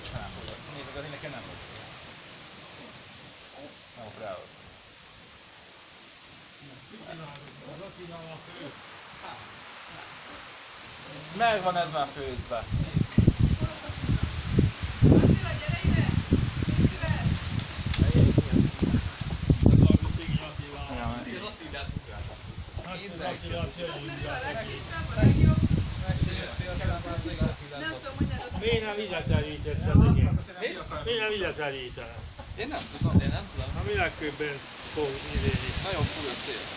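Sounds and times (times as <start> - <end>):
speech: 6.9 - 13.0, 31.3 - 36.7
strong wind blowing outdoors: 12.2 - 31.2, 31.8 - 36.7.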